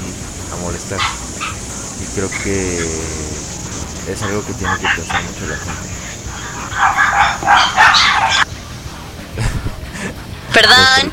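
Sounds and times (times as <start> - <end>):
dogs barking: 0.6 - 8.5
speech: 0.7 - 1.2, 2.1 - 3.3, 4.0 - 6.0, 6.8 - 7.6, 10.6 - 11.1.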